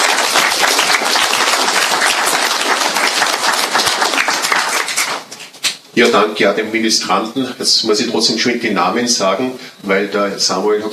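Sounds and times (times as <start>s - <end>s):
audience applause: 0.0s - 5.4s
speech: 6.0s - 10.9s.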